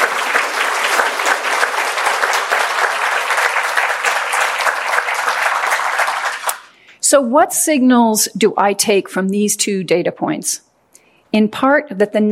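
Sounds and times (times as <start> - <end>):
audience applause: 0.0 - 6.7
speech: 7.1 - 10.7, 11.3 - 12.3.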